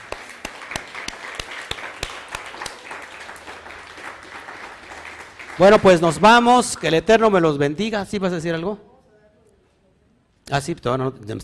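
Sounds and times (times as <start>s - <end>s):
audience applause: 0.0s - 6.8s
speech: 5.6s - 8.9s, 10.5s - 11.4s.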